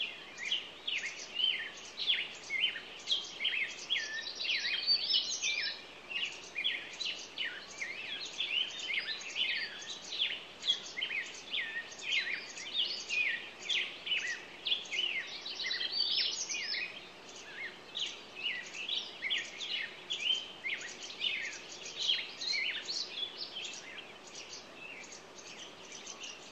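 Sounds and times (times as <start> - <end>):
soft hiss: 0.0 - 26.5
songbirds chirping: 0.0 - 26.5.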